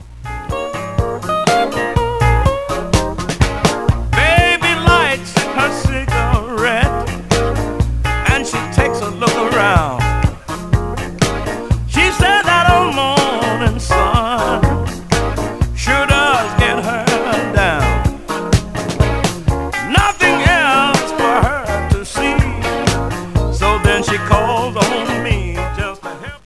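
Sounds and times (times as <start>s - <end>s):
blues music: 0.0s - 26.4s.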